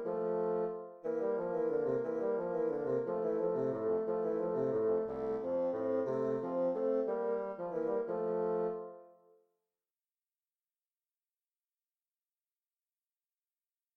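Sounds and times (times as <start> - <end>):
bassoon duet: 0.0 - 9.1.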